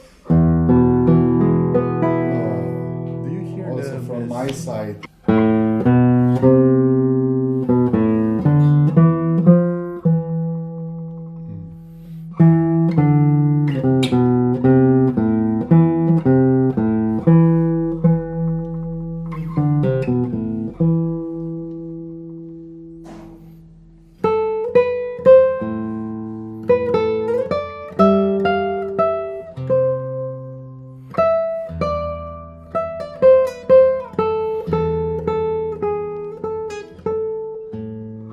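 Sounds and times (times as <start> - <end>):
notes plucked on a traditionally built guitar: 0.0 - 38.3
speech: 4.6 - 5.1.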